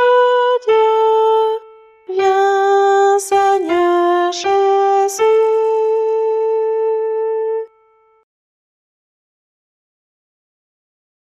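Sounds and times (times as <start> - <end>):
soprano singing a Mass chant: 0.0 - 7.7.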